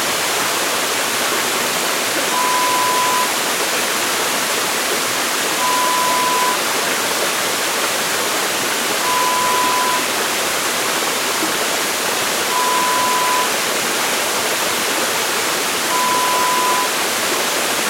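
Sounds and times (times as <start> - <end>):
waterfall: 0.0 - 17.8.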